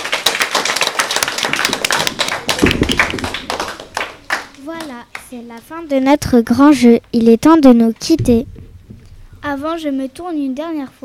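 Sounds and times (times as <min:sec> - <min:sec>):
audience applause: 0:00.0 - 0:04.9
speech: 0:05.3 - 0:08.5, 0:09.4 - 0:11.0.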